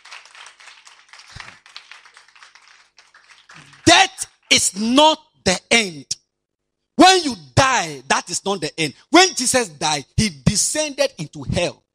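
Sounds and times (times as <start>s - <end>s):
audience clapping hands: 0.0s - 4.8s
speech: 4.5s - 6.2s, 7.0s - 11.8s.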